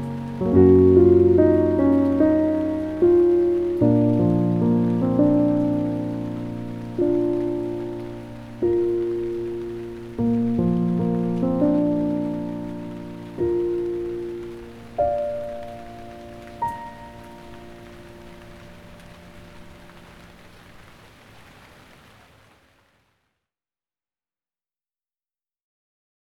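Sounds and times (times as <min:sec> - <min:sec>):
calming piano music: 0:00.0 - 0:21.0
rain: 0:00.0 - 0:23.4.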